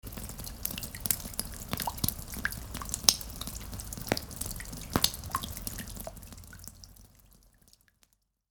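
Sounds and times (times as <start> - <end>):
light rain: 0.0 - 8.4.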